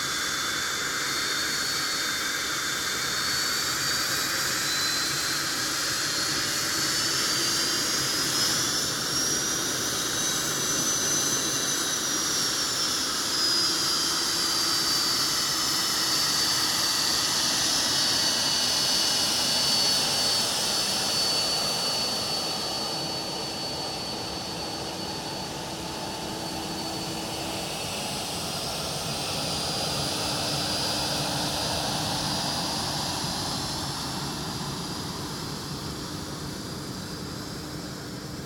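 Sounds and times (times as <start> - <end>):
BAE Hawk 127 jet aircraft idling while taxiing: 0.0 - 38.4.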